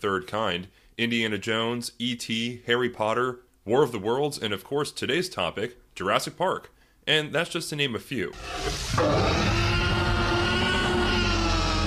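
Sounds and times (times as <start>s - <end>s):
speech: 0.0s - 9.6s
reconstructed T-Rex roar: 8.4s - 11.8s.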